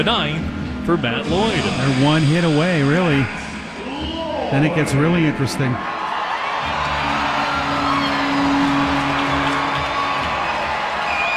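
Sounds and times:
speech: 0:00.0 - 0:03.4, 0:04.0 - 0:05.9
baseball crowd cheering: 0:03.8 - 0:11.3.

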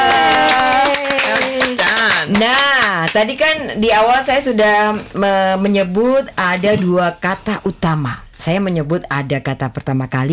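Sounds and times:
hands clapping: 0:00.0 - 0:03.3
speech: 0:02.4 - 0:10.3.

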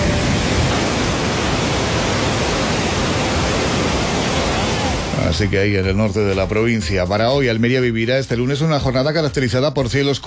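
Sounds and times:
rain falling: 0:00.0 - 0:05.3
speech: 0:05.3 - 0:10.2.

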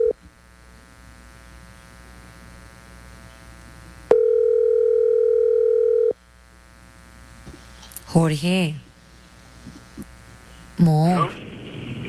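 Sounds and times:
telephone ringback tone during a call: 0:04.1 - 0:06.2
speech: 0:08.2 - 0:08.8, 0:10.8 - 0:11.4.

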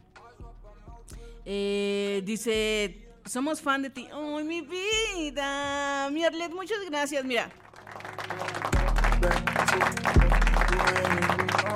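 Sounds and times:
speech: 0:01.5 - 0:07.6, 0:09.2 - 0:10.2
applause sound effect: 0:07.5 - 0:11.7.

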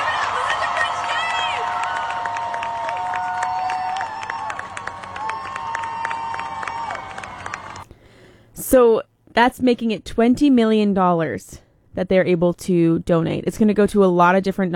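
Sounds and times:
high whoops and shouts: 0:00.0 - 0:07.8
large crowd applause: 0:00.0 - 0:07.8
speech: 0:08.7 - 0:14.7.

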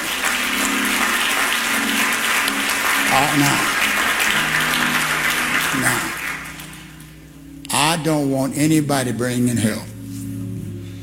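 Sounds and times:
audience clapping: 0:00.0 - 0:07.8
speech: 0:03.1 - 0:03.7, 0:05.8 - 0:06.1, 0:08.0 - 0:09.9.

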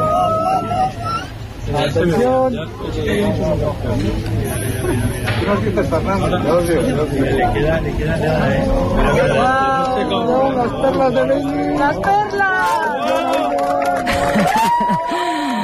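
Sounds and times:
laughter: 0:00.0 - 0:01.9, 0:03.0 - 0:15.6
crowd cheering at eclipse: 0:00.0 - 0:02.3, 0:08.2 - 0:15.6
crowd applauding at eclipse: 0:09.0 - 0:15.6.

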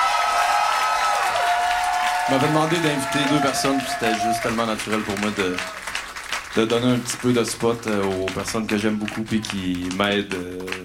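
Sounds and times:
audience applause: 0:00.0 - 0:10.8
speech: 0:02.3 - 0:05.8, 0:06.6 - 0:10.8.

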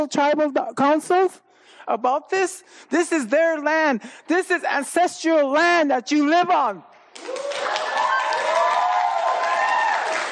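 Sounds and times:
speech: 0:00.0 - 0:07.5
audience applauding: 0:07.1 - 0:10.3.

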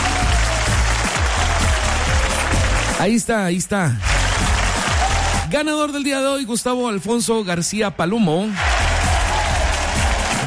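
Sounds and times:
applause for the winner of a radio contest: 0:00.0 - 0:03.2, 0:04.0 - 0:05.5, 0:08.4 - 0:10.4
speech: 0:03.0 - 0:04.1, 0:05.5 - 0:08.8.

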